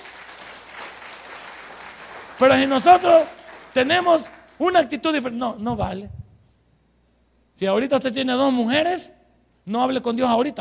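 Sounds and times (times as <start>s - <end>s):
audience applause: 0.0s - 4.8s
speech: 2.4s - 6.2s, 7.6s - 10.5s.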